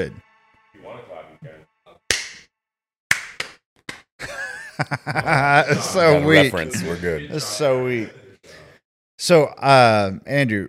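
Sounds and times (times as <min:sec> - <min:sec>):
speech: 0:00.0 - 0:00.2, 0:04.8 - 0:08.6, 0:09.2 - 0:10.6
hand claps for syncing recording: 0:02.1 - 0:02.5, 0:03.1 - 0:04.1
laughter: 0:04.2 - 0:08.4
murmured talk: 0:05.6 - 0:08.8.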